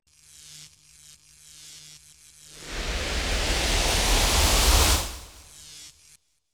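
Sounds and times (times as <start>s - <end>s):
electric charge: 2.6s - 5.5s.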